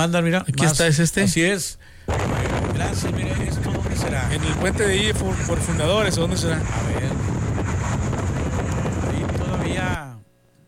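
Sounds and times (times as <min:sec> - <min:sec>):
speech: 0:00.0 - 0:07.3
strong wind buffeting a phone microphone: 0:02.1 - 0:10.0.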